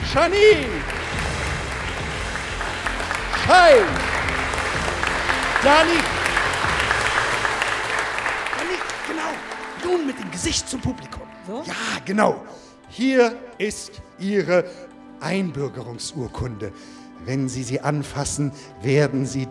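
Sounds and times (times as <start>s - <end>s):
audience applause: 0.0s - 11.4s
speech: 0.1s - 1.0s, 3.5s - 4.1s, 5.6s - 6.2s, 9.8s - 19.5s.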